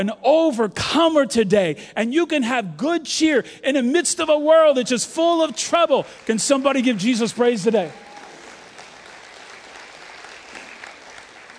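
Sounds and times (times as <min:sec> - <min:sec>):
speech: 0:00.0 - 0:08.1
audience clapping: 0:05.3 - 0:11.5.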